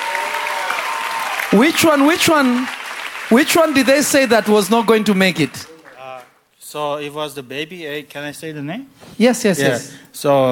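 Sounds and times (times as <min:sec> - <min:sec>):
voices calling out and cheering: 0:00.0 - 0:06.2
audience clapping: 0:00.0 - 0:06.4
speech: 0:01.5 - 0:05.7, 0:06.7 - 0:10.5.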